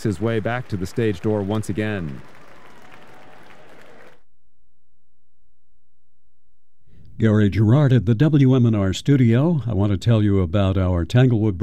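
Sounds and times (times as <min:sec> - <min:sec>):
speech: 0:00.0 - 0:02.4, 0:07.2 - 0:11.6
concert audience and orchestra applause: 0:00.0 - 0:04.2.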